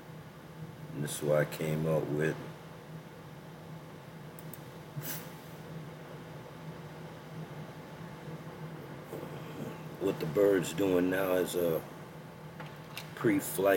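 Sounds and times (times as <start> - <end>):
small cooling fan running inside a drone: 0.0 - 13.7
speech: 1.0 - 2.5, 10.1 - 11.9, 13.2 - 13.7.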